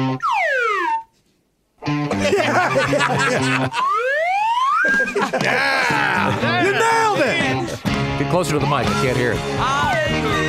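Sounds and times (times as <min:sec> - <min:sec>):
slide whistle playing: 0:00.2 - 0:01.2, 0:03.7 - 0:05.1
laughter: 0:02.1 - 0:04.2, 0:04.8 - 0:07.9
speech: 0:08.4 - 0:10.4.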